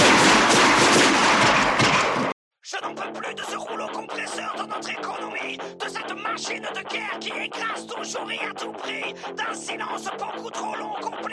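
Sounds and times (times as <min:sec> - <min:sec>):
gunfire barrage: 0:00.0 - 0:02.4
speech: 0:08.6 - 0:11.3.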